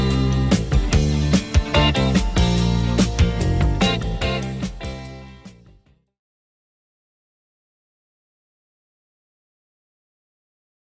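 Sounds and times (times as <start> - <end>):
1970s rock drum beat: 0.0 - 5.6.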